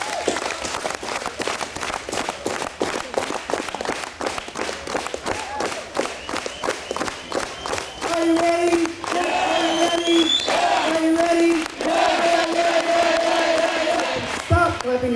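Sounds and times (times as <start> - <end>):
audience clapping hands: 0.0 - 15.0.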